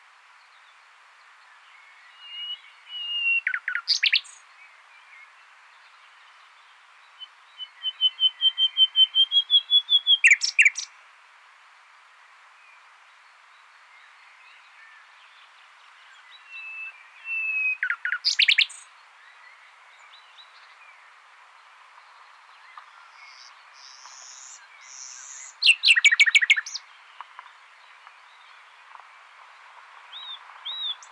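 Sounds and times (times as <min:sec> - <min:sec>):
common nightingale singing: 0:01.8 - 0:05.3, 0:07.2 - 0:10.9, 0:16.1 - 0:18.9, 0:22.7 - 0:27.5.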